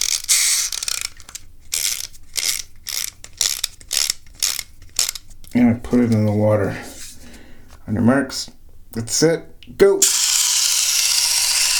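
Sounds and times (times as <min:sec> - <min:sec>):
winding up a toy boat's clockwork motor: 0:00.0 - 0:05.2, 0:10.0 - 0:11.7
speech: 0:05.9 - 0:06.9, 0:07.9 - 0:10.3.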